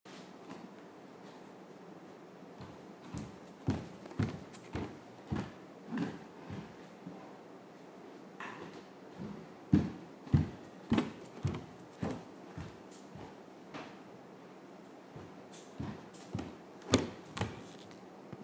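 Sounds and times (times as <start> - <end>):
footsteps: 2.6 - 7.3, 8.4 - 14.0, 15.1 - 18.4.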